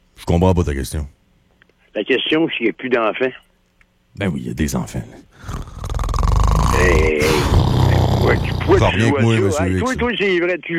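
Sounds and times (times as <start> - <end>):
speech: 0.2 - 1.2, 2.0 - 3.4, 4.2 - 5.7, 6.8 - 10.7
person imitating snoring: 5.4 - 10.0.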